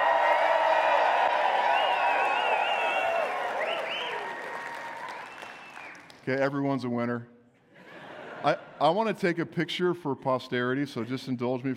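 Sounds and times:
audience high whoops: 0.0s - 6.0s
GCF North audience clapping at a 20-year anniversary gathering: 0.0s - 6.4s
speech: 6.3s - 7.3s, 8.4s - 11.7s.

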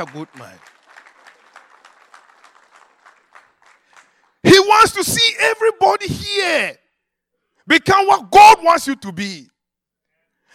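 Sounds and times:
speech: 0.0s - 0.8s, 4.7s - 6.8s, 7.7s - 9.5s
audience clapping: 0.0s - 4.7s.

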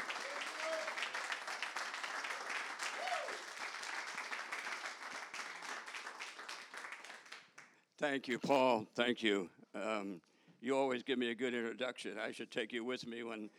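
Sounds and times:
audience applause: 0.0s - 7.4s
people whooping: 0.1s - 1.2s, 2.8s - 3.5s
speech: 8.0s - 13.5s.

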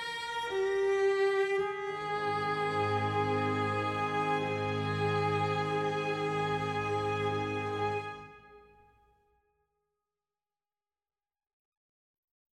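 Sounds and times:
romantic energetic music: 0.5s - 8.7s.

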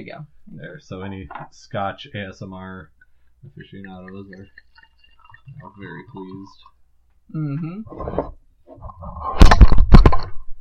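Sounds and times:
speech: 0.0s - 4.6s, 5.5s - 6.7s, 7.3s - 10.4s
microphone being knocked over: 9.2s - 10.5s.

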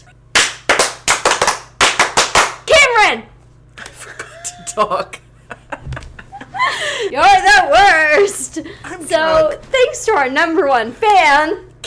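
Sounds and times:
small group clapping: 0.0s - 2.7s
speech: 3.1s - 3.3s, 4.8s - 5.2s, 7.0s - 11.7s
laughter: 3.8s - 8.5s.

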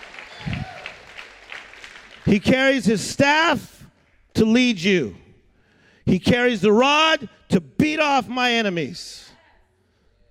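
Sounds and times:
audience clapping: 0.0s - 3.0s
speech: 2.3s - 3.8s, 4.4s - 5.2s, 6.1s - 9.2s.

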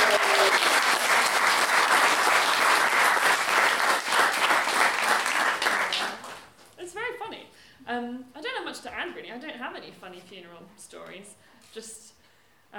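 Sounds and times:
audience applause: 0.0s - 6.5s
speech: 9.2s - 12.0s.

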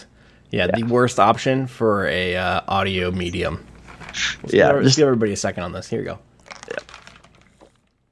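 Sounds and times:
speech: 0.5s - 3.7s, 4.4s - 6.8s
drinking from a water receptacle: 6.4s - 8.1s.

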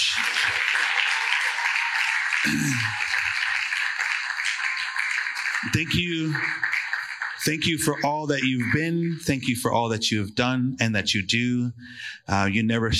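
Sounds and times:
audience applause: 0.0s - 9.3s
speech: 2.4s - 3.0s, 5.8s - 6.7s, 7.4s - 12.9s.

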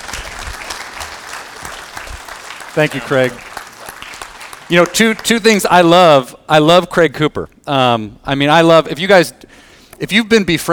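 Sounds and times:
audience applause welcoming a guest speaker: 0.0s - 5.7s
speech: 2.8s - 3.5s, 4.7s - 10.7s.

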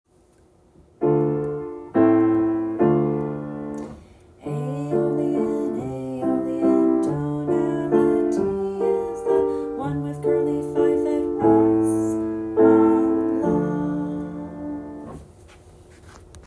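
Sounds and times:
music in Aeolian tonality: 1.0s - 15.3s.

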